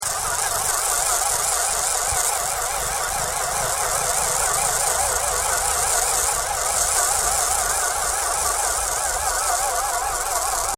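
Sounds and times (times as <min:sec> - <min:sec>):
sci-fi mechanical loop: 0:00.0 - 0:10.7.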